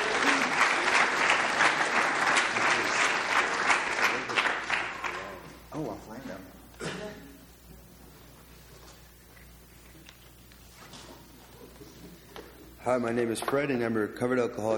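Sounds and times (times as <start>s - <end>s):
crowd applause: 0.0s - 5.4s
speech: 12.9s - 14.7s.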